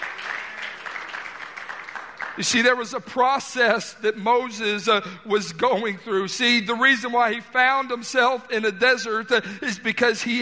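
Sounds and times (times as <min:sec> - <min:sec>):
crowd clapping: 0:00.0 - 0:03.1
speech: 0:02.4 - 0:10.4.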